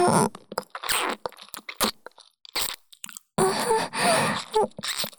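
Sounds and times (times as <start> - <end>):
adult kissing: 0.1 - 3.1, 4.2 - 5.1
ear licking: 0.2 - 3.3, 4.2 - 5.1.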